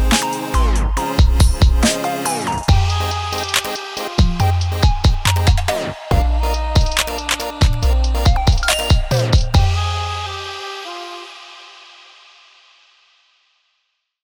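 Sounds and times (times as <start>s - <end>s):
drum kit medley at 140 BPM: 0.0s - 9.8s.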